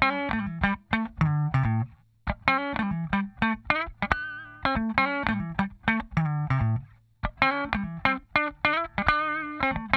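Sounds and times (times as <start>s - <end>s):
funk guitar: 0.0s - 9.9s.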